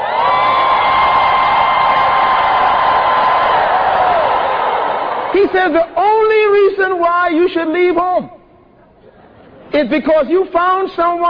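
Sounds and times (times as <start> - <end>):
crowd screaming: 0.0 - 5.4
speech: 5.4 - 8.3, 9.8 - 11.2.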